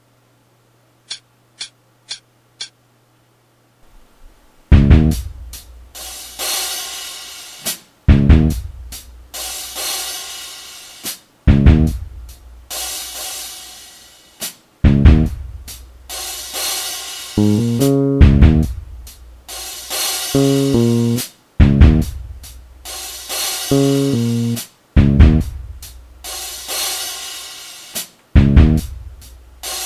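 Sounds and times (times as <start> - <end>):
intro backing music: 4.7 - 7.0, 7.6 - 9.9, 11.5 - 13.2, 14.8 - 16.7, 17.4 - 26.5, 28.4 - 29.8.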